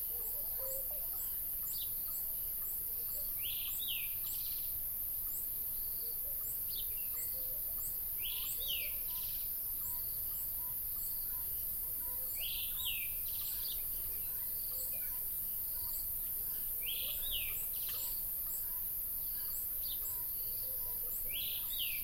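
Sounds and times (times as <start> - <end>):
birds: 0.0 - 22.0.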